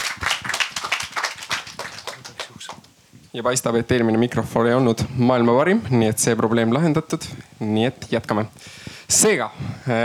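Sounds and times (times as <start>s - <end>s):
small audience at a panel discussion clapping for a guest: 0.0s - 2.9s
speech: 3.4s - 10.0s.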